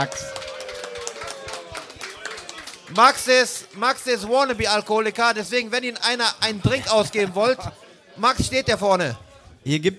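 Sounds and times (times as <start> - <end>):
speech: 0.0 - 0.4, 2.9 - 9.9
audience applause: 0.0 - 4.6.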